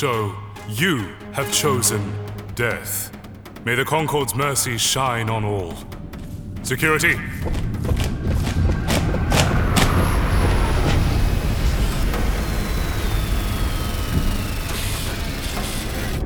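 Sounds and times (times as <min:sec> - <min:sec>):
speech: 0:00.0 - 0:06.0, 0:06.6 - 0:08.3
spaceship arriving overhead: 0:05.0 - 0:16.2
sharp thuds: 0:05.9 - 0:13.3.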